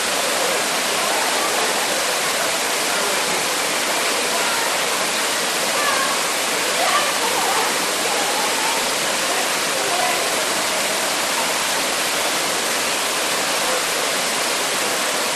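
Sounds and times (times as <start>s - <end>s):
people chatting: 0.0s - 12.6s, 13.2s - 15.3s
waterfall into a lagoon in a rainforest: 0.0s - 15.3s
people laughing: 6.9s - 8.6s.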